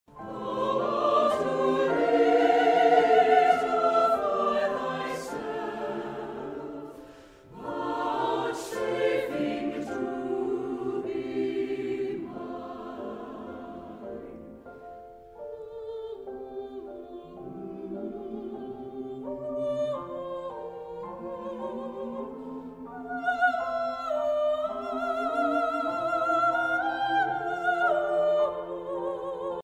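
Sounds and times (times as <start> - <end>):
lullaby music: 0.1 - 29.6.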